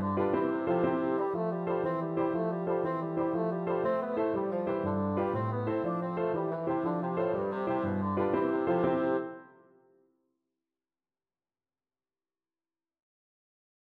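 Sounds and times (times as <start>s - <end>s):
bassoon playing Irish jig medley: 0.0s - 9.4s.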